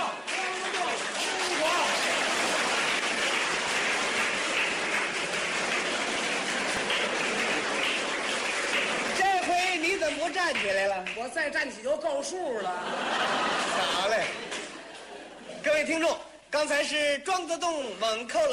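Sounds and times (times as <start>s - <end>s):
spectators cheering and applauding a standing ovation at a table tennis match: 0.0s - 11.3s
speech: 10.6s - 14.4s, 15.8s - 18.5s
laughter: 12.5s - 15.6s.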